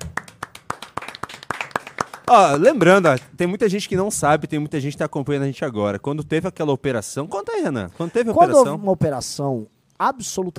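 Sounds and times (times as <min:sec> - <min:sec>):
applause: 0:00.0 - 0:03.4
speech: 0:02.3 - 0:10.5.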